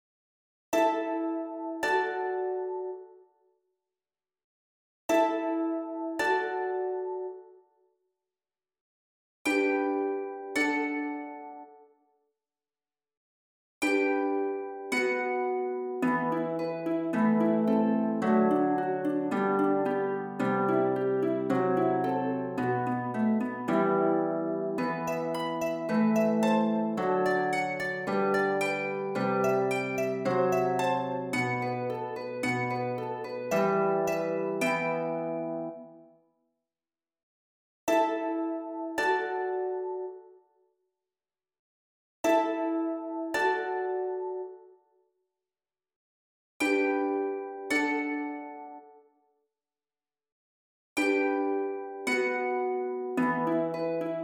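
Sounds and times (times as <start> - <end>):
harp: 0.8 - 3.1, 5.1 - 7.4, 9.5 - 11.6, 13.8 - 36.0, 37.9 - 40.2, 42.3 - 44.5, 46.6 - 48.8, 51.0 - 54.2.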